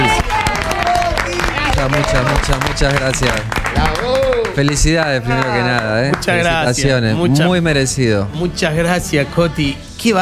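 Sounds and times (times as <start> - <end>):
cheering and whooping voices: 0.0 - 2.4
audience applause: 0.0 - 6.8
speech: 1.8 - 10.2.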